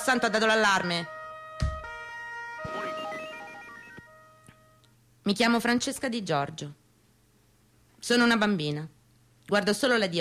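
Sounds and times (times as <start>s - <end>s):
speech: 0.0s - 1.2s, 5.3s - 6.8s, 8.0s - 10.2s
police car siren: 0.8s - 4.8s.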